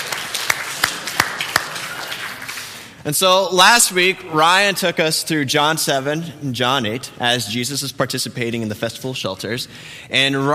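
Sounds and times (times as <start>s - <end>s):
sparse clapping from a church congregation: 0.0s - 2.6s
speech: 3.0s - 10.5s.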